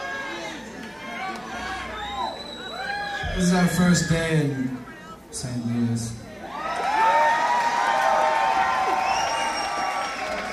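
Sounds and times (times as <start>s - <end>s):
crowd cheering: 0.0s - 5.2s, 6.3s - 10.5s
speech: 3.4s - 6.2s.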